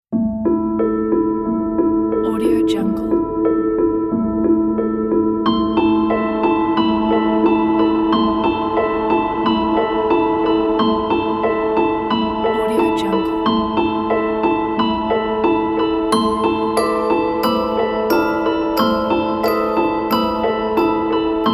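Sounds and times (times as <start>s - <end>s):
scary melody: 0.2s - 21.5s.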